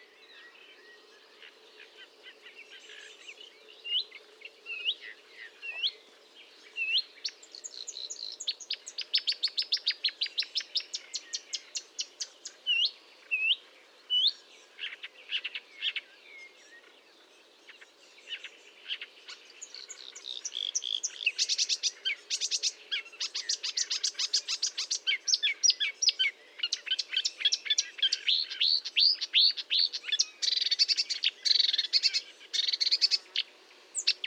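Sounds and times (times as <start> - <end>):
marsh warbler singing: 0.0 - 34.2.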